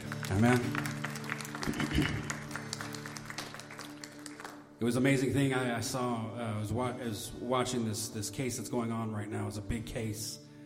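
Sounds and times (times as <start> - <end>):
audience clapping hands: 0.0 - 4.8
speech: 0.3 - 1.0, 1.7 - 2.4, 4.8 - 10.4.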